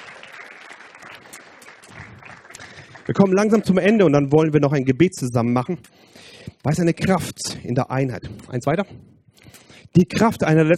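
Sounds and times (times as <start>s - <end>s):
audience applause at a German church gathering: 0.0s - 3.8s
speech: 3.1s - 9.1s, 10.0s - 10.7s.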